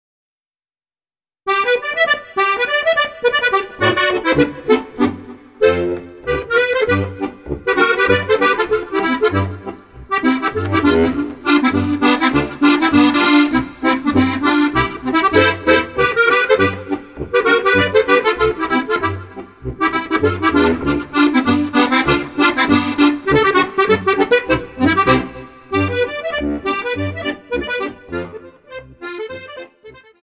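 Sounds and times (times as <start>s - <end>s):
swing music: 1.7s - 30.1s.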